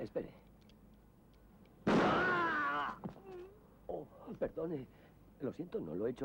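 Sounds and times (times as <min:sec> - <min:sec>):
speech: 0:00.1 - 0:00.5, 0:04.4 - 0:06.2
pistol gunshot: 0:01.9 - 0:02.3.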